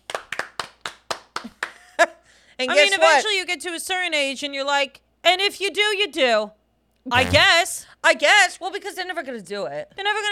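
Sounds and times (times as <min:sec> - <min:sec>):
hands clapping: 0:00.0 - 0:01.9
speech: 0:01.4 - 0:10.3.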